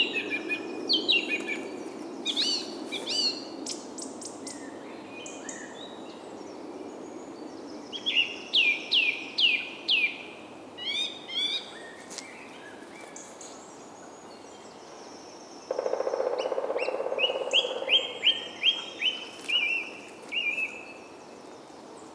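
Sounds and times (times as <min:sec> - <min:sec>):
birds: 0:00.0 - 0:10.2, 0:10.8 - 0:22.1.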